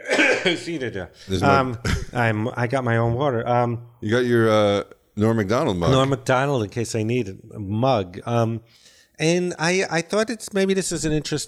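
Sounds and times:
throat clearing: 0.0 - 0.7
speech: 0.4 - 11.4.

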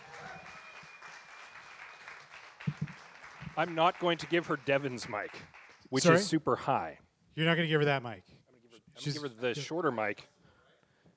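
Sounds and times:
audience applause: 0.0 - 6.0
speech: 3.6 - 8.3, 9.0 - 10.3.

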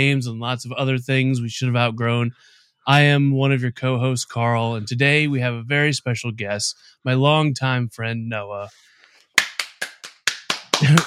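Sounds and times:
speech: 0.0 - 8.9
brief hand clapping applause: 9.4 - 11.0.

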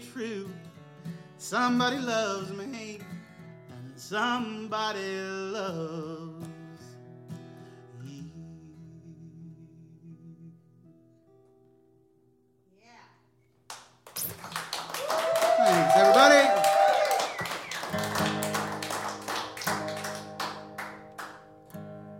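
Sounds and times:
speech: 1.5 - 2.6, 4.1 - 6.3
audience applause: 14.2 - 21.4.

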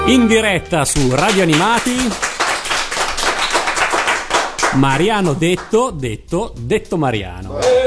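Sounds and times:
speech: 0.1 - 2.4, 4.7 - 7.8
applause: 0.9 - 5.7.

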